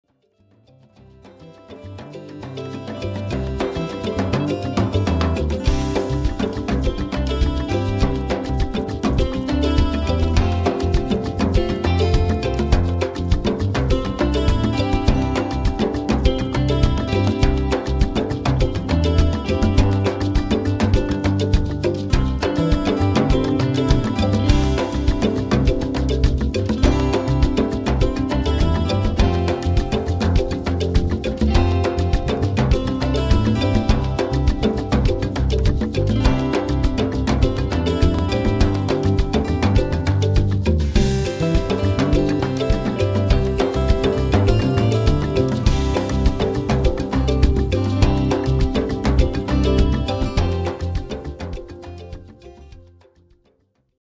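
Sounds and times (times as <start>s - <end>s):
percussion track: 0.7s - 53.4s.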